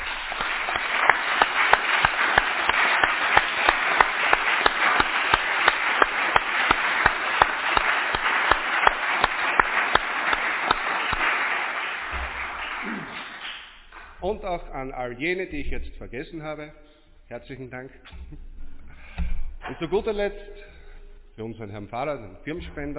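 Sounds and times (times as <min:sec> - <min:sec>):
audience applause: 0:00.0 - 0:14.2
speech: 0:14.4 - 0:18.5, 0:19.7 - 0:20.5, 0:21.4 - 0:22.9.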